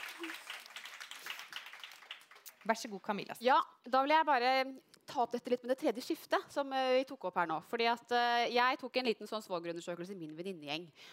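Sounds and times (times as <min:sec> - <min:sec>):
audience clapping: 0:00.0 - 0:03.0
speech: 0:02.6 - 0:11.1.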